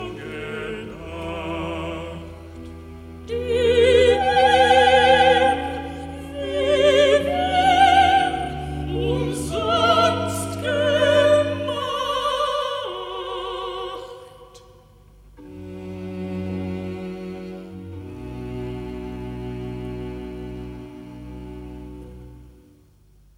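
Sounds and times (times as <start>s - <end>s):
recitative sung by alto, soprano, tenor and bass: 0.0s - 14.9s.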